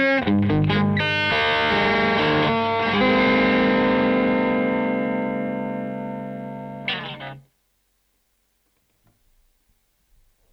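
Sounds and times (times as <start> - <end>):
Stratocaster electric guitar EQ test: 0.0 - 7.5.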